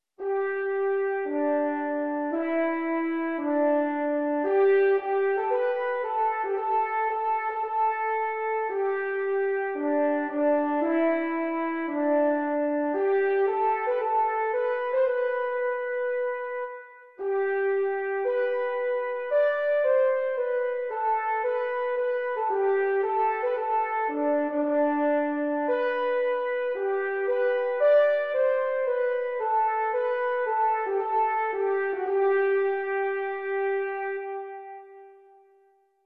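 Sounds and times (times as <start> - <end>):
song: 0.2 - 35.5.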